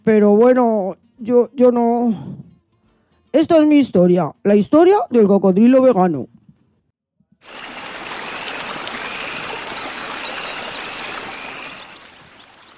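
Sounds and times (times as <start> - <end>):
speech: 0.0 - 2.4, 3.3 - 6.4, 7.4 - 7.6
river water rushing and gurgling: 7.5 - 12.7
faint high bird chirps: 8.3 - 12.7.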